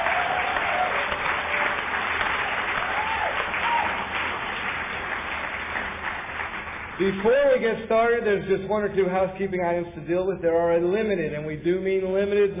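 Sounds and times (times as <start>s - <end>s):
audience applause: 0.0s - 7.9s
speech: 7.0s - 12.5s.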